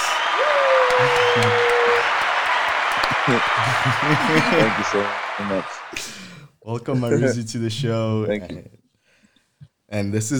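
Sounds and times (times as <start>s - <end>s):
audience applause: 0.0s - 6.4s
drawn-out cheer: 0.0s - 6.4s
laughter: 0.0s - 7.4s
speech: 3.3s - 8.8s, 9.9s - 10.3s.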